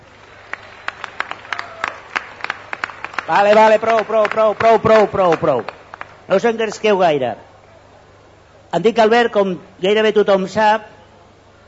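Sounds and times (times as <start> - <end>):
crowd applause: 0.0 - 6.3
speech: 3.3 - 7.5, 8.7 - 10.9.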